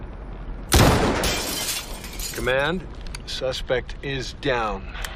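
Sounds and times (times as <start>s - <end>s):
sniper rifle gunshot: 0.7s - 1.5s
speech: 2.4s - 5.0s.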